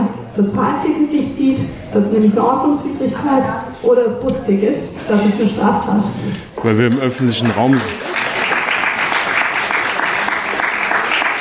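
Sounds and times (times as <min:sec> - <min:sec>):
speech: 0:00.4 - 0:08.1
audience applause: 0:06.8 - 0:11.4.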